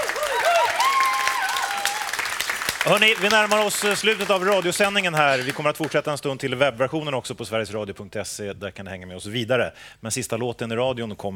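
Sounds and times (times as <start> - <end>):
audience clapping for a singer and her band at a live music event: 0.0 - 6.2
speech: 2.8 - 11.3.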